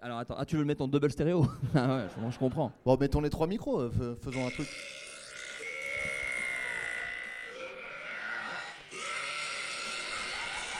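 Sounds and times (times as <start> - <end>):
speech: 0.2 - 5.0
laughter: 1.4 - 2.8, 9.6 - 10.7
long loud burp blended with a yell: 4.3 - 10.7.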